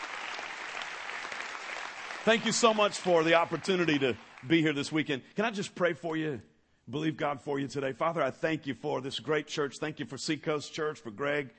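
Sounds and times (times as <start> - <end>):
audience applause: 0.0 - 4.9
speech: 2.2 - 11.5.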